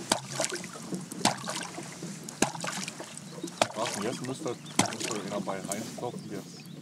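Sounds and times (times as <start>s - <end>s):
sharp knocking signals: 0.1s - 1.8s, 2.4s - 2.9s, 3.6s - 3.9s, 4.8s - 5.2s
talking: 3.4s - 6.7s.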